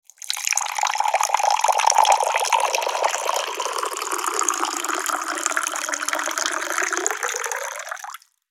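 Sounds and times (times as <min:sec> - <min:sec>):
glass water jug: 0:00.0 - 0:08.3.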